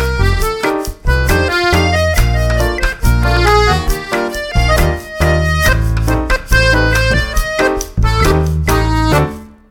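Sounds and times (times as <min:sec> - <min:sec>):
tap dancing closework crawl: 0:00.2 - 0:09.3.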